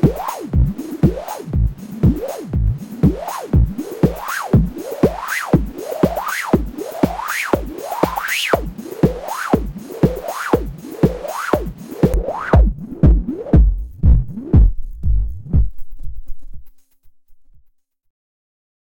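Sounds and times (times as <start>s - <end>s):
drum loop: 0.0s - 17.4s.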